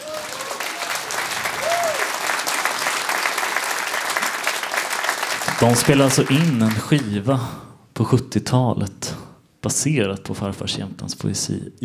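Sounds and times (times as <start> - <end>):
warm applause: 0.0 - 7.3
speech: 5.6 - 11.8.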